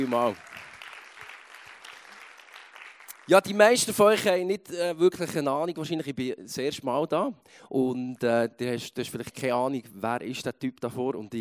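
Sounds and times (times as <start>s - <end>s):
speech: 0.0s - 0.5s, 3.3s - 11.4s
audience applause: 0.0s - 3.8s.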